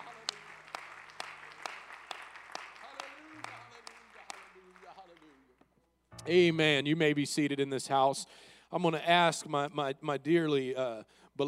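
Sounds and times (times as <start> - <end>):
audience clapping hands: 0.0 - 5.4
speech: 6.3 - 11.4.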